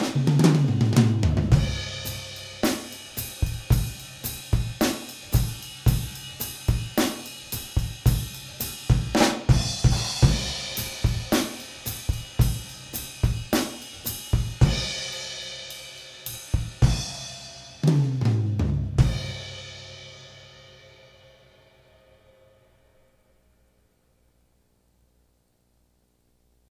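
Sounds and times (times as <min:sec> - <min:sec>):
half-time 4/4 rock pop ballad drum groove at 110 BPM: 0:00.0 - 0:20.2.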